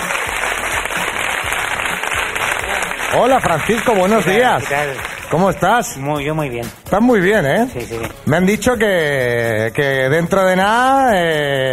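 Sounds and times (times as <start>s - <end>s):
crowd applause: 0.0s - 5.6s
speech: 3.1s - 11.7s.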